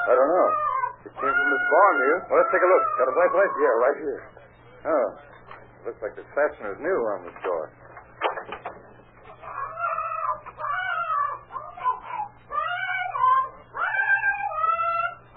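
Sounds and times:
parrot squawking: 0:00.0 - 0:04.2, 0:09.3 - 0:15.3
speech: 0:00.1 - 0:07.8.

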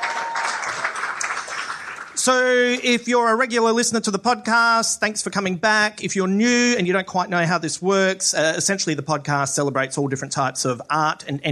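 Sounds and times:
audience applause: 0:00.0 - 0:02.8
speech: 0:02.2 - 0:11.5.

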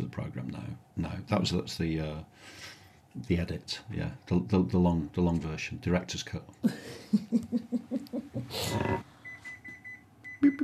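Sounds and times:
speech: 0:00.1 - 0:09.1, 0:10.4 - 0:10.6
oven timer beeping while biscuits bake: 0:09.2 - 0:10.6.

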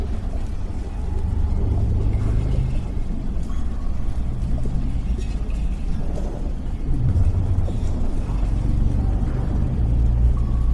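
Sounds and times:
dense low rumble of a damaged underwater lab: 0:00.0 - 0:10.7
wavering humming drone: 0:00.0 - 0:10.7.

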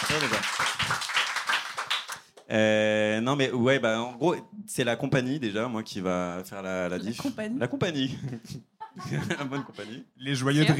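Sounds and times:
audience applause: 0:00.0 - 0:02.2
speech: 0:00.1 - 0:01.1, 0:02.5 - 0:10.7
laughter: 0:08.0 - 0:10.7.

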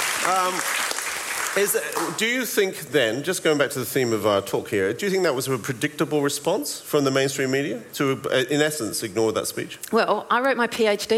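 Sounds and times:
audience clapping: 0:00.0 - 0:02.4
speech: 0:00.2 - 0:00.8, 0:01.5 - 0:11.1.

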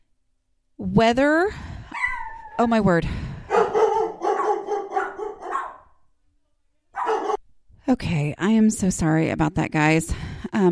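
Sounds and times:
speech: 0:00.8 - 0:01.6, 0:02.6 - 0:03.2, 0:07.9 - 0:10.6
dogs barking at door knock: 0:02.0 - 0:02.6, 0:03.4 - 0:06.0, 0:07.0 - 0:07.4.

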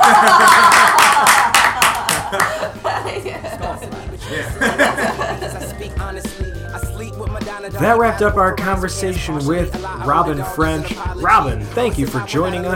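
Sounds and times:
hosts clapping: 0:00.0 - 0:03.0
soft chuckling: 0:02.0 - 0:05.9
speech: 0:07.8 - 0:12.7.

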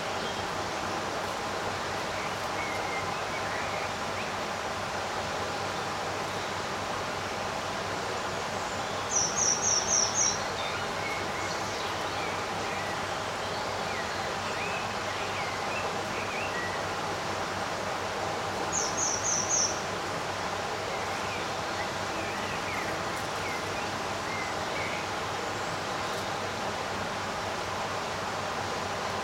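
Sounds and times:
steady hiss: 0:00.0 - 0:29.2
birds singing in a summer garden: 0:01.8 - 0:04.5, 0:08.0 - 0:17.2, 0:18.4 - 0:26.7.

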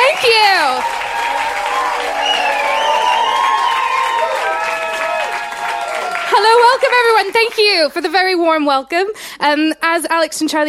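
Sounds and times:
audience whooping: 0:00.0 - 0:07.0
live studio audience applause welcoming a host to the stage: 0:00.0 - 0:07.9
speech: 0:07.0 - 0:10.6.

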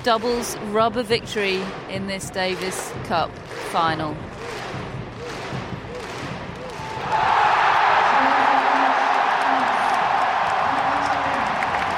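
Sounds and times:
speech: 0:00.0 - 0:04.6
stadium crowd cheering and applauding: 0:01.5 - 0:11.9
people shouting: 0:05.2 - 0:11.9.

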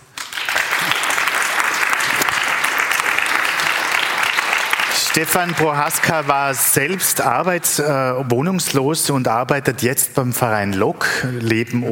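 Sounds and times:
audience applause: 0:00.0 - 0:07.6
speech: 0:05.2 - 0:11.8.

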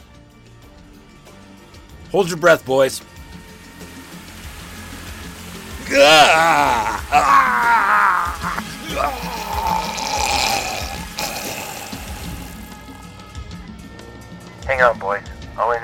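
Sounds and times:
speech: 0:02.1 - 0:03.1, 0:06.0 - 0:09.5, 0:14.7 - 0:15.8
person urinating: 0:03.8 - 0:13.1
low groaning voice: 0:05.8 - 0:12.7.

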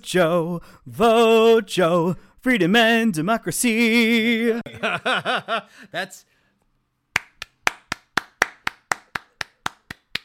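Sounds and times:
speech: 0:00.0 - 0:06.4
laughter: 0:04.6 - 0:05.8
hand clapping: 0:07.1 - 0:10.2.

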